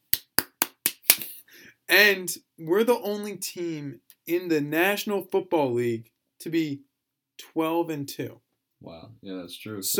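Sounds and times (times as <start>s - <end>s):
sharp hand claps: 0.0s - 1.4s
speech: 1.9s - 9.9s.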